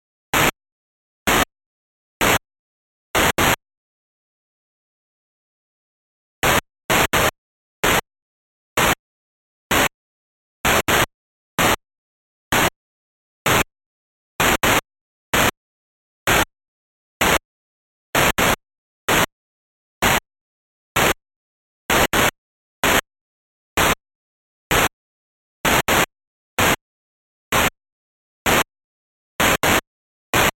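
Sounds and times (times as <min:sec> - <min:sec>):
noise: 0:00.3 - 0:00.6, 0:01.2 - 0:01.5, 0:02.2 - 0:02.5, 0:03.1 - 0:03.6, 0:06.4 - 0:08.1, 0:08.8 - 0:09.0, 0:09.7 - 0:10.0, 0:10.6 - 0:11.8, 0:12.5 - 0:12.8, 0:13.4 - 0:13.7, 0:14.4 - 0:15.6, 0:16.3 - 0:16.5, 0:17.2 - 0:17.5, 0:18.2 - 0:19.4, 0:21.0 - 0:21.2, 0:21.9 - 0:23.1, 0:23.8 - 0:24.0, 0:24.7 - 0:25.0, 0:25.6 - 0:26.8, 0:27.5 - 0:27.8, 0:28.4 - 0:28.7, 0:29.4 - 0:30.5.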